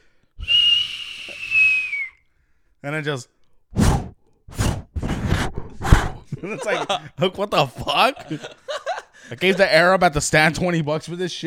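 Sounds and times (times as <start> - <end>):
voice imitating a firework launching: 0.4 - 2.2
speech: 2.8 - 3.4, 6.4 - 8.6, 9.3 - 11.4
mouth-made explosion bursts: 3.8 - 6.3
laughter: 6.2 - 9.7.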